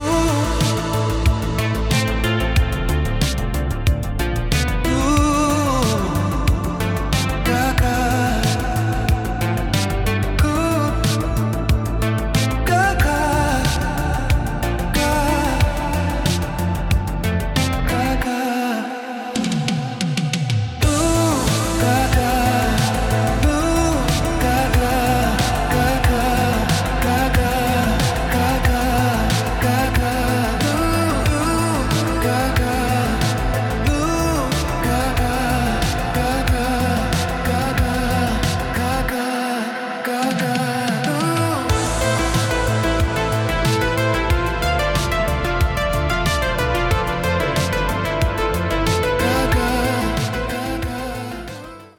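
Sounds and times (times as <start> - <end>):
electronica music: 0.0 - 51.9.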